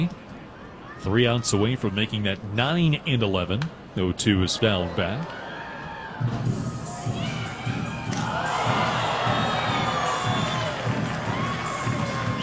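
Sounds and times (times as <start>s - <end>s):
speech: 1.0s - 5.4s, 6.2s - 6.6s
baseball stadium crowd cheering and shouting: 4.6s - 12.4s.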